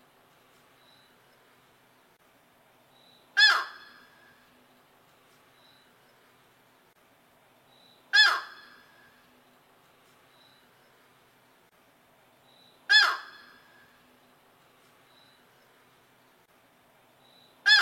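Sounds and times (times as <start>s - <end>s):
yellow-crowned night heron giving harsh squawks: 3.4s - 3.9s, 8.1s - 8.7s, 12.9s - 13.5s.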